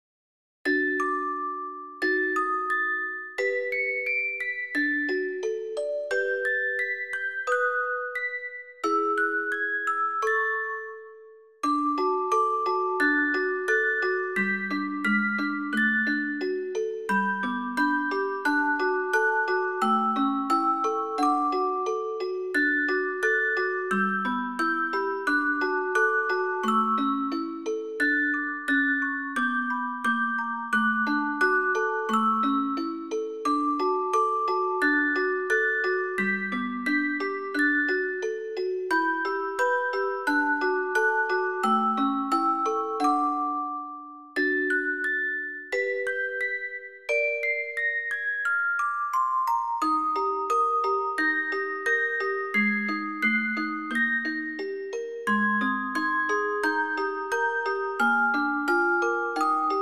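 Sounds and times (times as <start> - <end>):
twinkle sound: 0.7 - 59.8.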